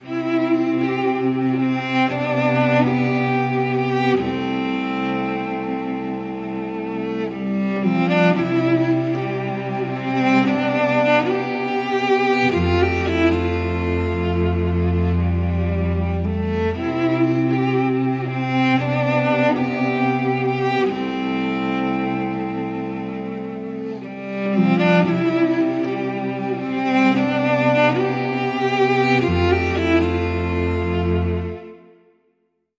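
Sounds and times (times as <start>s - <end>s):
cello: 0.0s - 32.2s.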